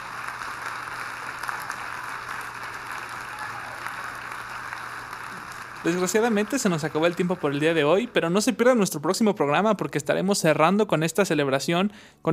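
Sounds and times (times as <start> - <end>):
applause: 0.0 - 9.6
speech: 5.8 - 12.3.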